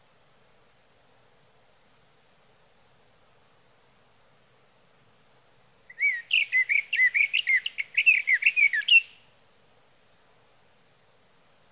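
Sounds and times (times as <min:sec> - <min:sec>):
sage thrasher song: 0:05.9 - 0:09.2.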